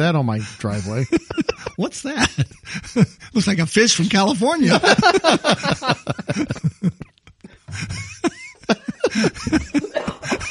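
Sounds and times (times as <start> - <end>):
speech: 0.0 - 7.0, 9.2 - 9.6
laughter: 0.4 - 3.4, 4.0 - 10.5
man coughing: 7.7 - 10.5.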